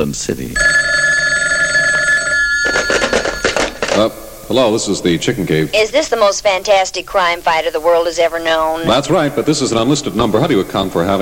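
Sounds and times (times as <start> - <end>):
speech: 0.0 - 0.8, 4.0 - 11.2
telephone bell ringing: 0.6 - 4.5.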